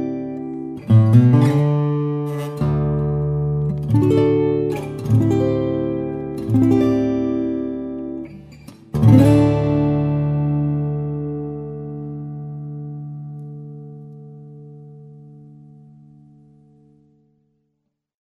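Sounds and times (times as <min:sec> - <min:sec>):
granadillo guitar playing: 0:00.0 - 0:17.3.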